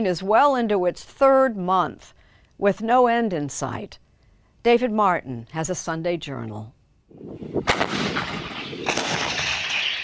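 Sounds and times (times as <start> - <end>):
speech: 0.0 - 4.0, 4.6 - 9.2
booming artillery fire: 7.3 - 10.0.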